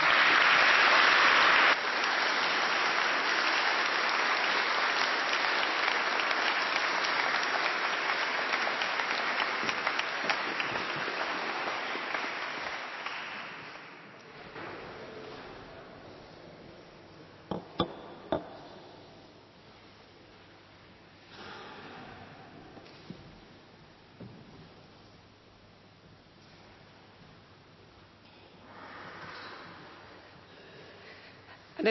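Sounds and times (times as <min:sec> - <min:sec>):
audience applause: 0:00.0 - 0:14.1.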